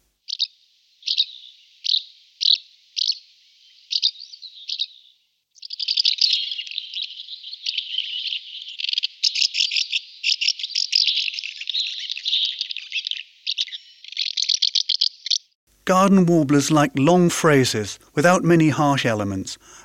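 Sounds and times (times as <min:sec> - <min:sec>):
house martin calls: 0:00.2 - 0:15.5
speech: 0:15.9 - 0:19.6.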